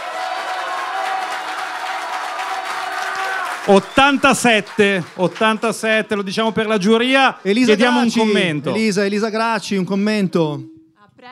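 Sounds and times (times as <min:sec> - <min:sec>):
audience applause: 0:00.0 - 0:08.6
speech: 0:03.7 - 0:11.3.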